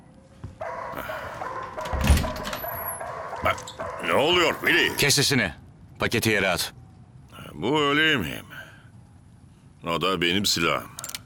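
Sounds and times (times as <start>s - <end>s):
dog barking: 0.6s - 5.0s
speech: 3.4s - 6.8s, 7.6s - 8.5s, 9.8s - 11.0s.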